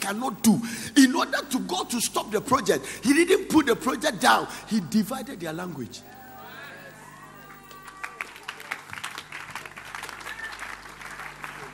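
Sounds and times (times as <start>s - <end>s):
speech: 0.1s - 6.2s
weak audience clapping: 7.5s - 11.7s.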